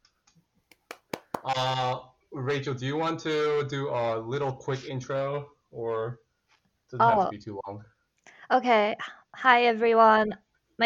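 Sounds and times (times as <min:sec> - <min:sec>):
hand clap: 0:00.7 - 0:01.6
speech: 0:01.4 - 0:06.2, 0:06.9 - 0:07.9, 0:08.5 - 0:10.8.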